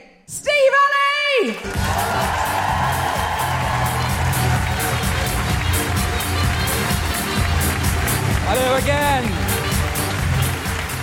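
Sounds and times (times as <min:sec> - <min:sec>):
speech: 0:01.4 - 0:02.1
audience clapping: 0:01.5 - 0:11.0
audience cheering woohoo: 0:01.7 - 0:06.1.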